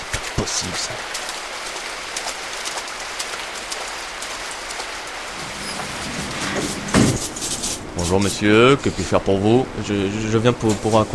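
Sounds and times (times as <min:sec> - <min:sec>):
splash: 0:00.0 - 0:08.1
rain falling: 0:00.0 - 0:11.1
speech: 0:00.4 - 0:01.2, 0:08.0 - 0:11.1
low rumbling hum: 0:05.3 - 0:10.2.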